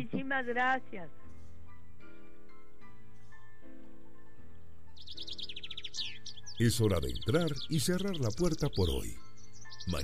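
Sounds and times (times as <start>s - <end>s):
speech: 0.0s - 1.2s, 6.6s - 10.0s
birds singing in a garden: 0.3s - 10.0s.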